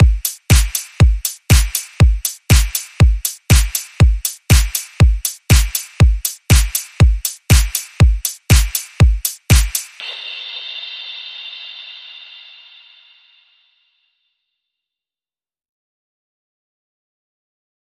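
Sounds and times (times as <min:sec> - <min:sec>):
short chill beat: 0:00.0 - 0:12.8.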